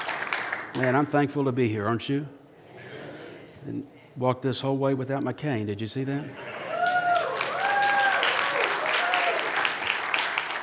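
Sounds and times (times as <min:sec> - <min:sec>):
audience applause: 0:00.0 - 0:00.9, 0:06.5 - 0:10.6
speech: 0:00.8 - 0:02.4, 0:03.6 - 0:06.5.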